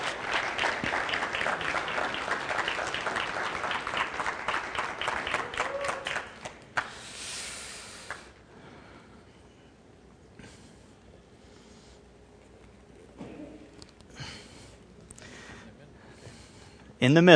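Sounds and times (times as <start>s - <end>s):
audience applause welcoming guests: 0.0s - 7.0s.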